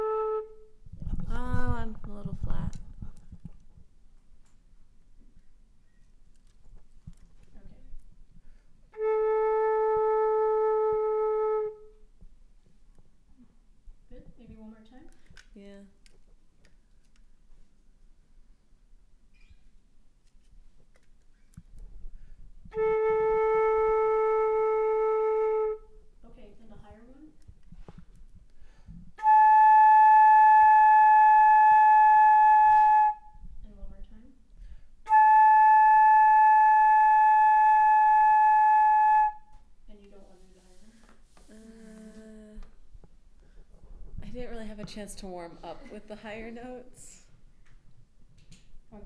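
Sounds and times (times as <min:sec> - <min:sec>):
flute: 0:00.0 - 0:00.8, 0:08.9 - 0:12.1, 0:22.6 - 0:26.1, 0:29.2 - 0:33.5, 0:35.1 - 0:39.6.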